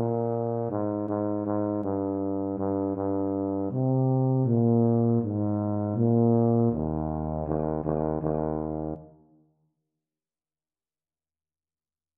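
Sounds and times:
E-flat tuba duet practice: 0.0 - 9.2.

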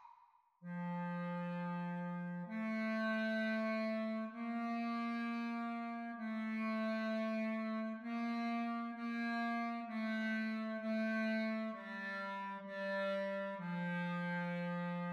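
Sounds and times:
clarinet duet at practice speed: 0.7 - 15.0.

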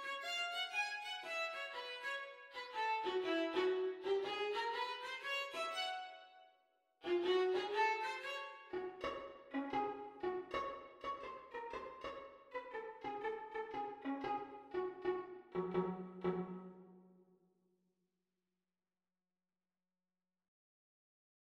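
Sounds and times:
viola duet playalong: 0.0 - 6.3, 7.0 - 17.0.

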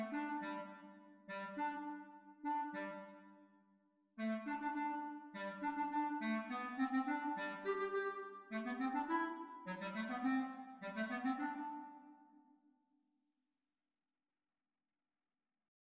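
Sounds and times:
clarinet duet at exam speed: 0.0 - 3.4, 4.2 - 12.2.

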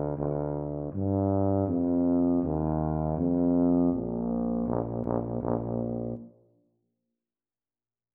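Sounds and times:
B-flat tuba duet practice: 0.0 - 6.3.

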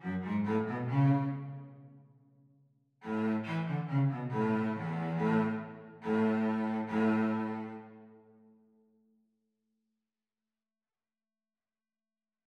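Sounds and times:
cello duet playalong: 0.0 - 2.0, 3.0 - 8.4.

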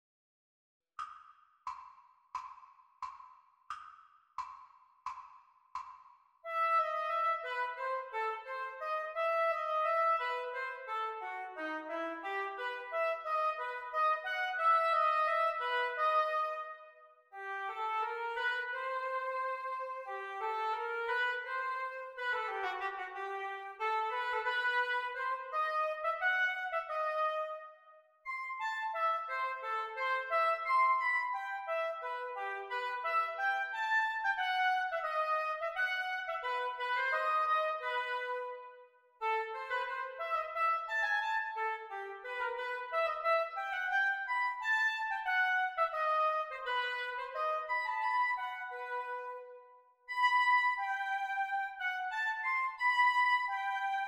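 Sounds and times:
oboe duet: 6.5 - 54.0.

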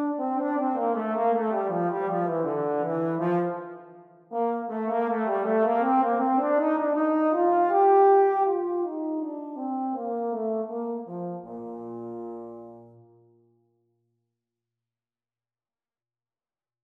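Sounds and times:
trombone playalong: 0.0 - 13.0.

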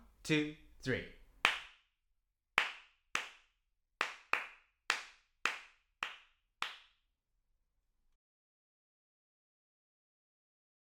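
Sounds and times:
speech: 0.3 - 1.2
hands clapping a rhythm: 1.4 - 1.9, 2.6 - 7.0.

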